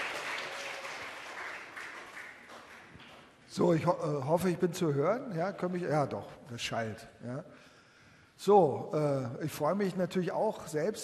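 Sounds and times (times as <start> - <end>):
audience applause: 0.0 - 3.3
speech: 3.6 - 7.7, 8.4 - 11.0.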